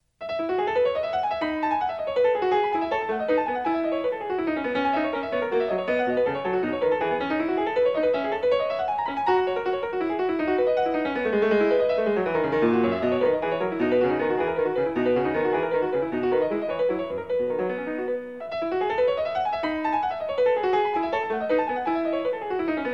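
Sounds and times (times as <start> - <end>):
piano courante: 0.2 - 22.9.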